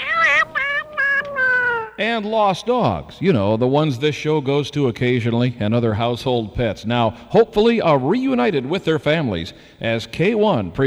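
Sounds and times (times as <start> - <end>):
cat meowing: 0.0 - 2.0
speech: 2.0 - 10.8.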